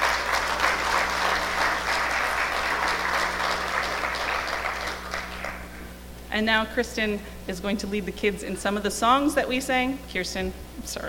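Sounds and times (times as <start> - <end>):
crowd round of applause: 0.0 - 5.8
low steady hum: 0.0 - 11.0
speech: 6.4 - 11.0.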